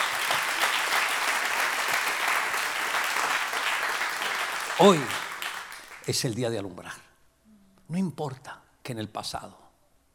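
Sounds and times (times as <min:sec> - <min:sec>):
audience applause: 0:00.0 - 0:06.2
speech: 0:04.8 - 0:05.2, 0:06.1 - 0:07.1, 0:07.9 - 0:09.6.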